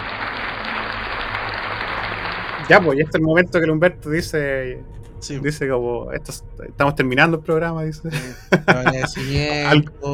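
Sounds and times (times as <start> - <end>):
applause sound effect: 0.0 - 4.4
laughter: 2.6 - 4.8, 6.9 - 9.8
speech: 2.7 - 10.1.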